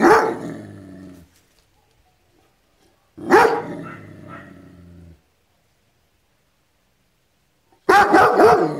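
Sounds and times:
dog barking: 0.0s - 0.5s, 1.7s - 4.6s, 7.8s - 8.7s.

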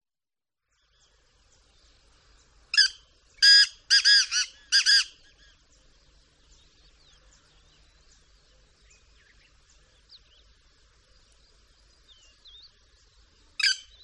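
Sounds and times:
Black francolin harsh grating call: 2.7s - 5.6s, 13.6s - 14.0s.

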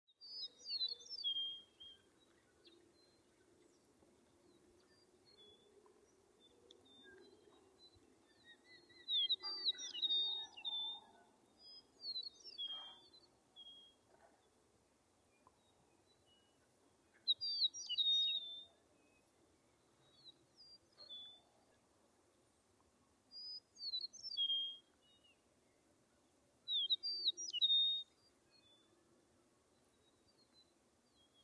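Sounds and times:
bird twittering song: 0.2s - 14.5s, 15.3s - 21.8s, 23.3s - 25.8s, 26.7s - 31.4s.

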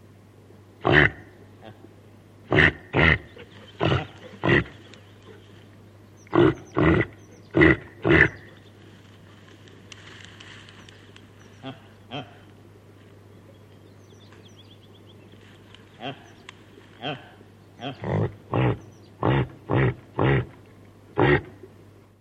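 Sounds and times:
reindeer giving hoarse grunting calls: 0.8s - 1.9s, 2.5s - 5.4s, 6.2s - 8.6s, 11.5s - 12.5s, 16.0s - 16.4s, 17.0s - 20.6s, 21.2s - 21.6s.

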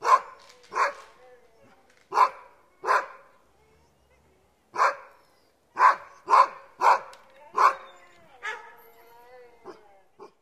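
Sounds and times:
dog barking: 0.0s - 1.1s, 2.1s - 3.3s, 4.8s - 5.2s, 5.8s - 7.8s, 8.4s - 8.7s
dog howling: 0.0s - 10.3s.

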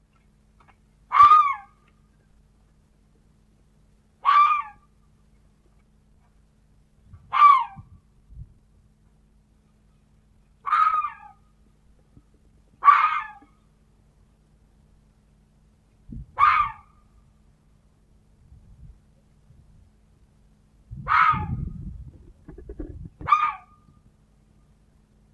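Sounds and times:
red fox barking: 1.1s - 1.8s, 4.2s - 4.8s, 7.3s - 7.8s, 10.6s - 11.4s, 12.8s - 13.5s, 16.4s - 17.0s, 21.0s - 21.7s, 23.2s - 23.8s.

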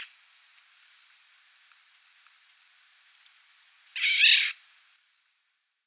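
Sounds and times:
Eurasian golden oriole harsh call: 4.0s - 4.5s.

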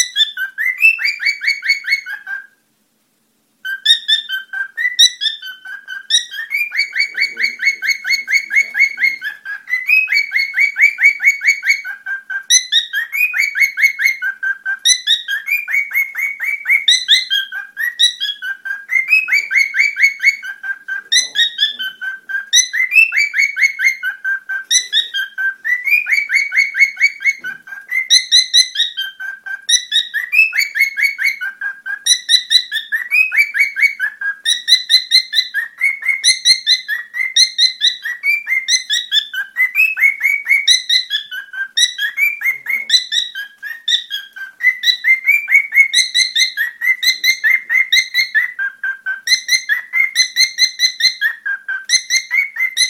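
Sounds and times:
cockatiel warbling song: 0.0s - 2.6s, 3.6s - 52.8s.

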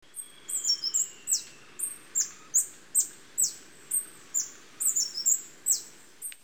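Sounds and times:
hummingbird chirping: 0.1s - 6.4s
faint steady whistle-like tone: 0.2s - 2.6s.

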